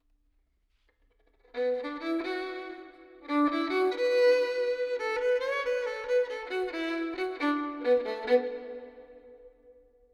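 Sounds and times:
violin with reverb: 0:01.5 - 0:09.7.

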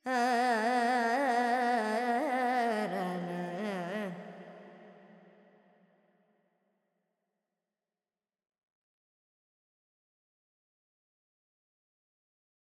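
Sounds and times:
Carnatic female vocal alaps in Dorian mode: 0:00.0 - 0:05.4.

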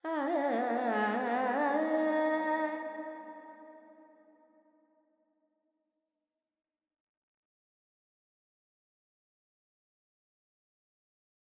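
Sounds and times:
Carnatic female vocal alaps in Dorian: 0:00.0 - 0:03.4.

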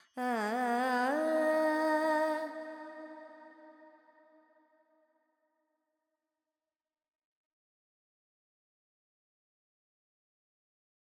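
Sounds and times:
Carnatic woman singing alaps in Phrygian mode: 0:00.0 - 0:03.5.

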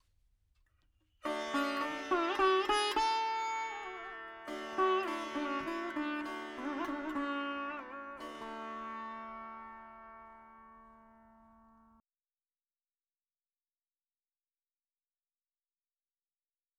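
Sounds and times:
dry veena melody: 0:01.2 - 0:12.0.

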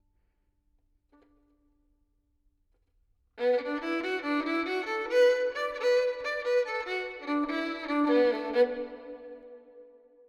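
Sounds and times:
violin with reverb: 0:03.4 - 0:10.0.

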